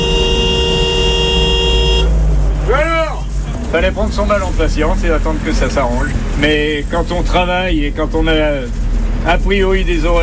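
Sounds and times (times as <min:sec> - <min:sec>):
car horns honking in a traffic jam: 0:00.0 - 0:03.4
low traffic rumble: 0:00.0 - 0:10.2
speech: 0:03.7 - 0:10.2.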